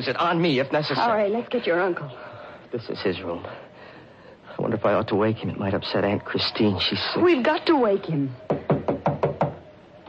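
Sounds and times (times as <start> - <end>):
speech: 0.0 - 3.7, 4.6 - 8.6
knocking on a bedroom door: 8.5 - 9.6.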